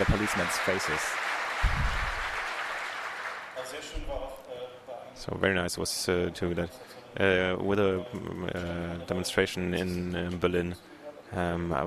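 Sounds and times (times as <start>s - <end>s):
speech: 0.0s - 2.0s, 3.7s - 11.8s
audience applause: 0.0s - 3.7s.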